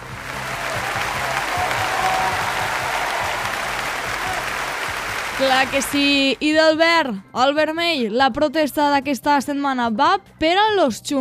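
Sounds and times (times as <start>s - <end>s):
applause sound effect: 0.0s - 6.4s
speech: 5.4s - 11.1s.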